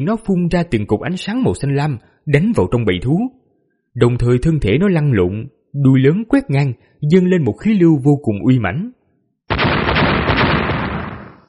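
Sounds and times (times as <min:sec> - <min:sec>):
speech: 0:00.0 - 0:03.4, 0:04.0 - 0:09.0
rapid series of loud booming explosions: 0:09.5 - 0:11.4.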